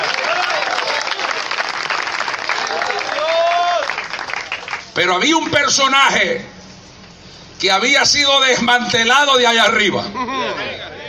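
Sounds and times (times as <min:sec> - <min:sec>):
sparse applause from a small audience: 0:00.0 - 0:05.0
speech: 0:05.0 - 0:06.5, 0:07.6 - 0:10.4.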